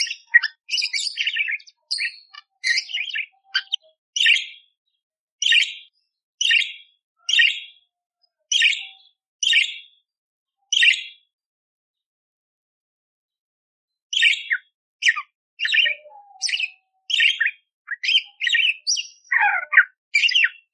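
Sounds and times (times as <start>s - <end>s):
budgerigar chirping: 0.0s - 4.6s, 5.4s - 7.8s, 8.5s - 9.9s, 14.2s - 20.7s.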